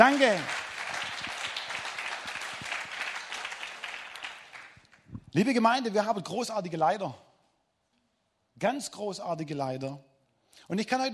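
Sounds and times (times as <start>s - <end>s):
speech: 0.0s - 0.6s, 5.3s - 7.2s, 8.6s - 11.1s
audience applause: 0.0s - 5.0s.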